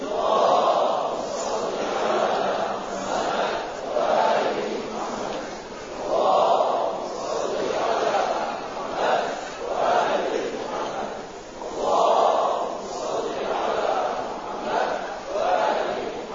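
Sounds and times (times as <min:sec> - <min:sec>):
large crowd reciting salawat in unison: 0:00.0 - 0:16.3.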